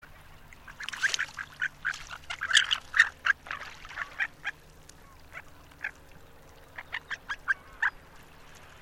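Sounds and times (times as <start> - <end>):
Harlequin duck squeaky calls: 0.8 - 5.9, 6.8 - 8.0.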